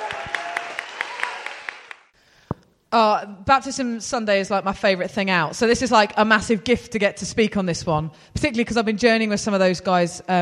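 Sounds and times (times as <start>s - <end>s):
crowd applauding: 0.0s - 2.2s
speech: 2.9s - 10.3s.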